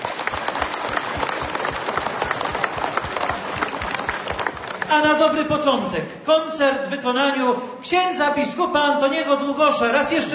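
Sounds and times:
warm applause from audience: 0:00.0 - 0:05.5
speech: 0:04.9 - 0:10.3.

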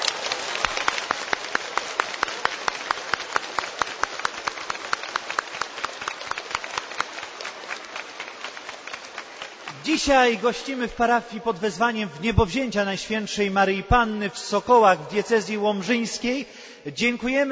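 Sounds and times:
audience applause: 0:00.0 - 0:10.6
speech: 0:10.0 - 0:17.5.

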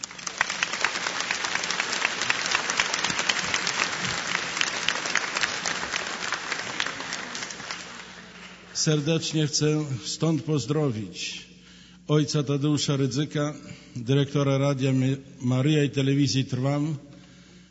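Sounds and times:
loud applause: 0:00.0 - 0:08.9
speech: 0:08.8 - 0:11.5, 0:12.1 - 0:17.1.

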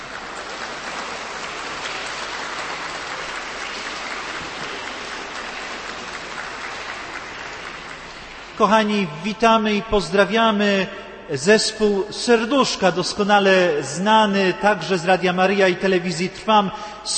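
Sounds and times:
audience applause: 0:00.0 - 0:08.7
speech: 0:08.6 - 0:17.1.

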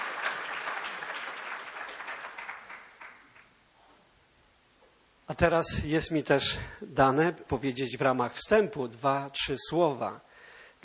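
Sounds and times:
audience applause: 0:00.0 - 0:03.5
speech: 0:05.3 - 0:10.8.

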